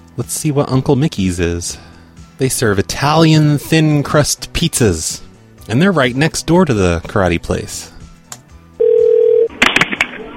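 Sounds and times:
speech: 0.2s - 8.0s
telephone dialing: 8.8s - 9.5s
telephone ringing: 8.8s - 9.6s.

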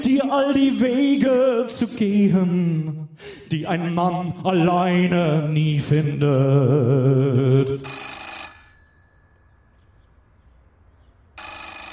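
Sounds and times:
speech: 0.0s - 8.0s
telephone ringing with a steady high electronic tone: 7.8s - 10.7s, 11.4s - 11.9s.

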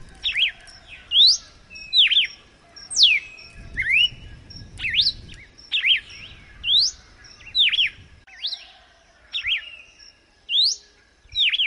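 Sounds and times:
Red-cowled cardinal song: 0.2s - 8.7s, 9.3s - 11.6s.

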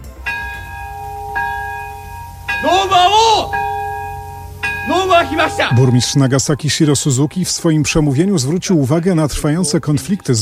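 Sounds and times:
memorial bell tolling in Nagasaki, Japan: 0.0s - 9.0s
speech: 2.6s - 3.6s, 5.1s - 10.4s.

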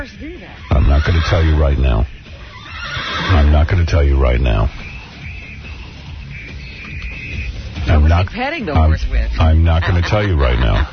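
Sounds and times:
speech: 0.0s - 2.2s, 2.8s - 4.8s, 7.9s - 10.9s
horse whinnying: 0.6s - 3.8s
laughter: 7.9s - 10.9s.

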